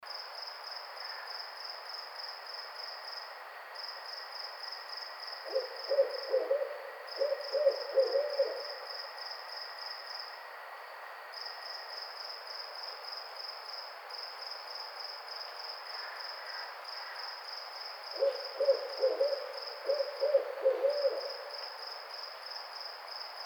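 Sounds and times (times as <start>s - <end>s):
barred owl loud uneven hoots and cackling notes: 5.4s - 8.8s, 18.1s - 21.5s.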